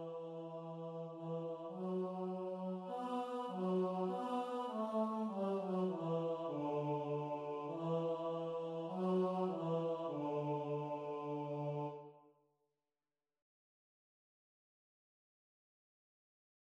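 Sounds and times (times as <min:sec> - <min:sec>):
tenor singing: 0:00.0 - 0:12.1.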